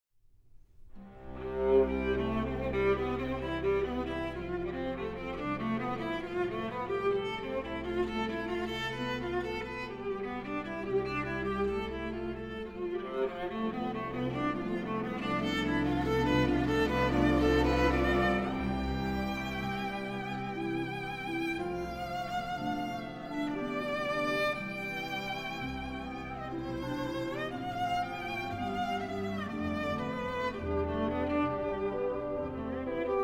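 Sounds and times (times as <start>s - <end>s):
viola and small orchestra playing a suite prelude: 1.0s - 33.2s.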